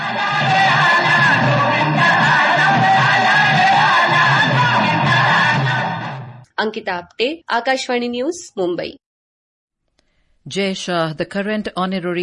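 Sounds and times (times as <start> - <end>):
large festival crowd cheering: 0.0 - 6.4
speech: 6.6 - 9.0, 10.4 - 12.2.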